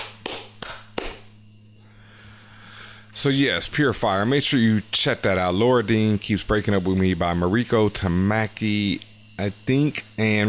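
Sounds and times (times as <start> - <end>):
hand claps for editing sync: 0.0 - 1.3
low steady electrical hum: 0.0 - 10.4
speech: 3.2 - 10.4.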